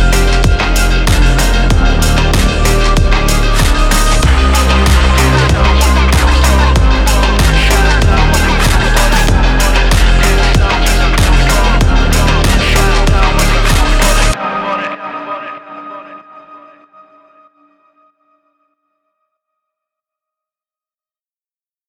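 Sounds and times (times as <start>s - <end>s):
emotional phonk house music: 0.0s - 14.9s.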